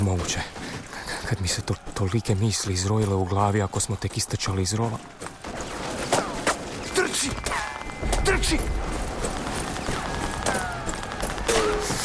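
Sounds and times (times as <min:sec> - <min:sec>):
speech: 0:00.2 - 0:00.7, 0:01.3 - 0:05.7, 0:07.2 - 0:07.6, 0:08.3 - 0:08.9
gunfire: 0:05.4 - 0:12.0
bullets whistling: 0:06.1 - 0:12.0.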